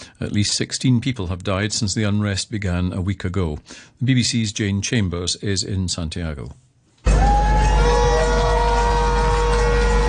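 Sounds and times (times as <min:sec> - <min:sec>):
speech: 0:00.2 - 0:07.3
huge crowd of protesters marching at Plaza Italia: 0:07.1 - 0:10.0.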